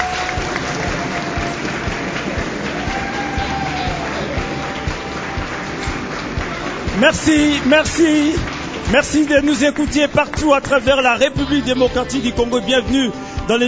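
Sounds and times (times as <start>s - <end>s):
large live audience applauding loudly: 0.0s - 11.4s
speech: 7.0s - 13.6s.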